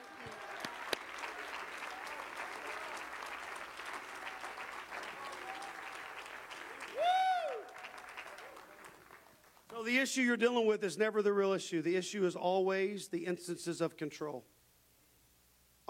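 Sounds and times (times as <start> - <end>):
audience clapping: 0.0 - 9.9
whistle or cheer: 6.9 - 7.8
speech: 9.8 - 14.5.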